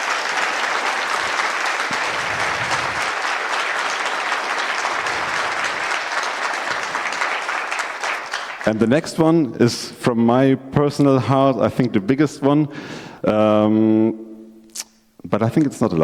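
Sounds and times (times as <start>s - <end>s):
audience applause: 0.0s - 8.9s
speech: 8.7s - 14.2s, 15.3s - 16.0s.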